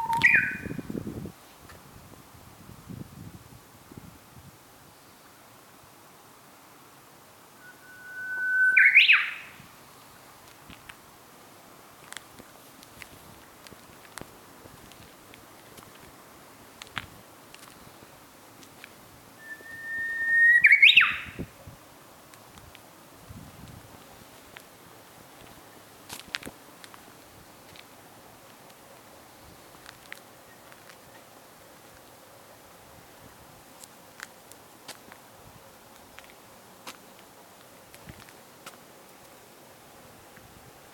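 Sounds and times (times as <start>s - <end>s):
Japanese bush warbler singing: 0.0s - 0.8s, 7.6s - 9.6s, 19.4s - 21.4s.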